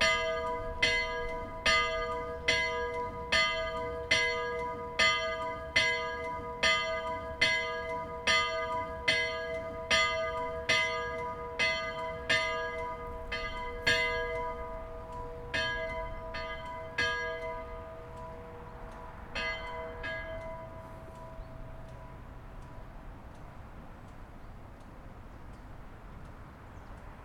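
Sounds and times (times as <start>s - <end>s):
church bell of St-Nikolaus in Willisau: 0.0s - 22.9s.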